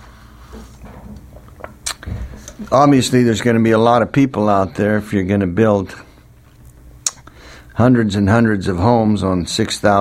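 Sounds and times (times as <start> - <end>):
person drinking a sip of water: 1.4 - 2.7
speech: 2.6 - 6.1, 7.8 - 9.9.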